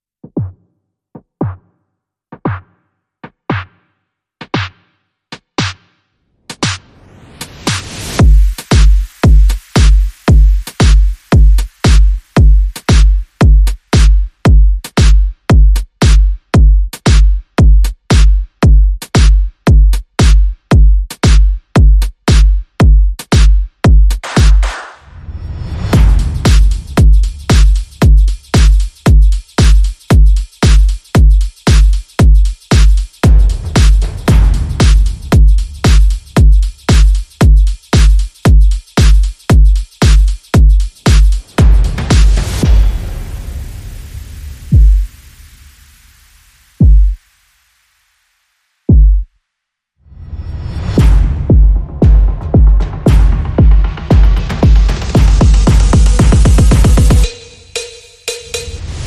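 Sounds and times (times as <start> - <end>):
drums: 6.5 - 25.0, 25.9 - 43.5, 44.7 - 45.2, 46.8 - 47.2, 48.9 - 49.2, 50.8 - 59.0.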